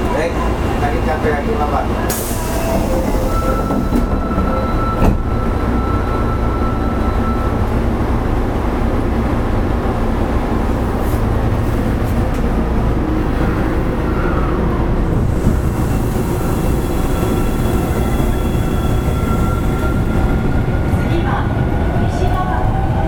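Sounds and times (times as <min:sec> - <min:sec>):
Osaka Municipal Subway Series 25 train running on the Sennichimae Line: 0:00.0 - 0:23.0
brief clanks and squeals: 0:02.1 - 0:07.6, 0:15.7 - 0:20.6.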